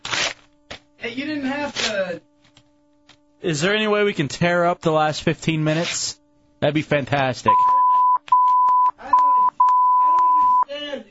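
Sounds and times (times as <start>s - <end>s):
speech: 1.1s - 2.3s, 3.4s - 7.7s
Morse code beeps: 7.5s - 10.7s.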